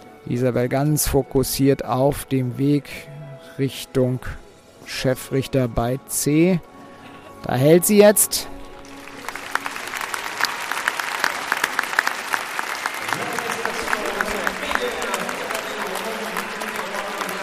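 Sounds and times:
speech: 0.3 - 6.7, 7.4 - 8.6
audience applause at equestrian arena: 8.6 - 17.4.

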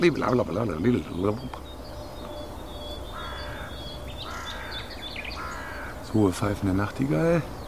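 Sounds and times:
speech: 0.0 - 1.7, 6.1 - 7.6
crows cawing: 1.5 - 7.2.

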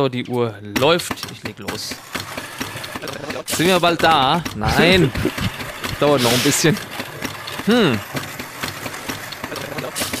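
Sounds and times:
speech: 0.0 - 2.3, 3.0 - 6.9, 7.7 - 8.3
coffee grinder grinding beans for espresso: 2.0 - 10.1
laughter: 2.9 - 3.5, 4.6 - 6.4.

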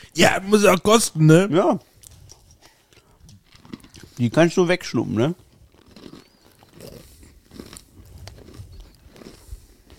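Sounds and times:
speech: 0.1 - 1.9, 4.2 - 5.4
crunching and chewing honey-coated salted nuts: 1.8 - 9.9.

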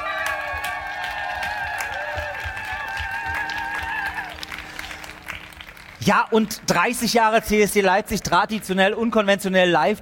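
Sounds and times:
faint cheering: 0.0 - 4.9
audience applause on open-air square: 0.0 - 7.2
speech: 6.0 - 10.0.

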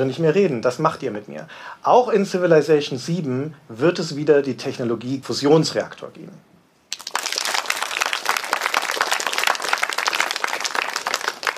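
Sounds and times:
speech: 0.0 - 6.5
friendly audience applause: 6.9 - 11.5.

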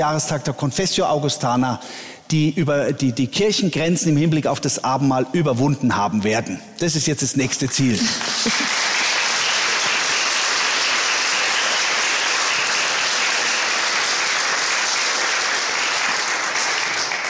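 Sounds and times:
speech: 0.0 - 8.7
audience applause: 7.6 - 17.2
laughter: 7.9 - 9.1.

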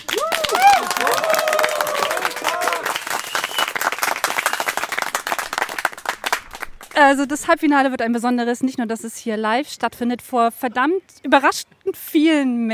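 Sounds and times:
live audience clapping: 0.0 - 7.2
speech: 7.0 - 12.7.

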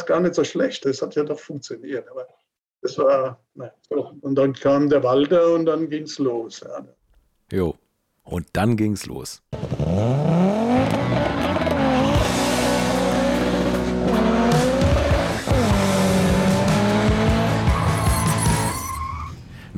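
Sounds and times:
speech: 0.0 - 10.6
Opel Ascona rally car engine: 9.6 - 19.5
tires squealing and skidding: 9.6 - 19.5.

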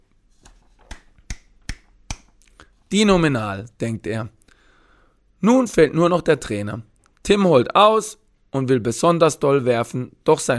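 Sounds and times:
sharp hand claps: 0.8 - 2.4
speech: 2.9 - 4.4, 5.4 - 10.5.

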